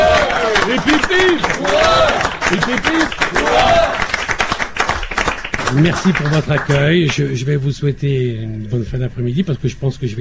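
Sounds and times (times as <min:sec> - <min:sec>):
crowd hip-hip-hooray cheer at a French gathering: 0:00.0 - 0:00.8, 0:01.4 - 0:02.4, 0:03.3 - 0:04.1
crowd clapping: 0:00.0 - 0:07.2
speech: 0:05.7 - 0:10.1.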